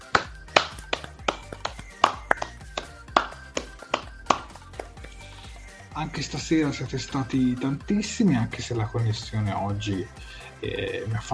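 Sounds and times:
sharp hand claps from a single pair of hands: 0:00.0 - 0:05.2
speech: 0:06.0 - 0:11.3.

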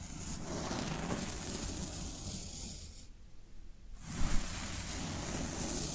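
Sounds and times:
floral foam sounds: 0:00.2 - 0:02.0, 0:04.0 - 0:05.8.

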